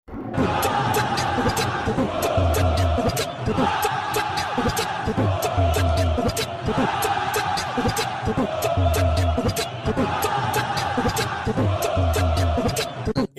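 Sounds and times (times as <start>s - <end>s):
supporters' shout: 0.4s - 13.1s.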